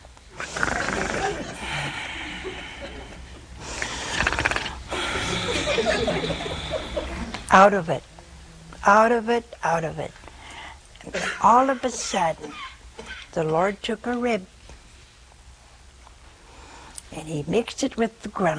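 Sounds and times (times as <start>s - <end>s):
man imitating loud snoring: 0.4s - 1.8s, 3.9s - 5.6s
laughter: 0.8s - 3.5s, 4.9s - 7.4s
speech: 7.5s - 8.1s, 8.8s - 10.2s, 11.0s - 12.6s, 13.3s - 14.5s, 17.2s - 18.5s.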